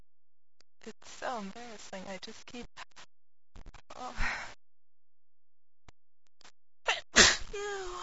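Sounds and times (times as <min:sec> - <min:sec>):
speech: 0:01.4 - 0:02.8, 0:04.0 - 0:04.3
person sneezing: 0:06.9 - 0:07.5.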